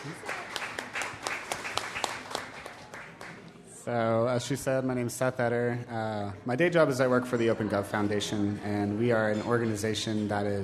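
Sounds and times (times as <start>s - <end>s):
speech: 0.0s - 0.3s, 3.9s - 10.6s
audience applause: 0.0s - 3.5s.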